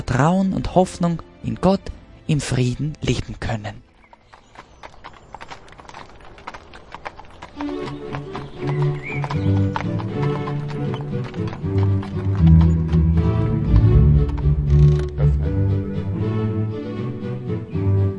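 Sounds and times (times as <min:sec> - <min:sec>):
speech: 0:00.1 - 0:03.9
hooves of a horse pulling a Fiaker carriage clip-clopping: 0:00.1 - 0:16.1
low rumbling: 0:10.8 - 0:18.1.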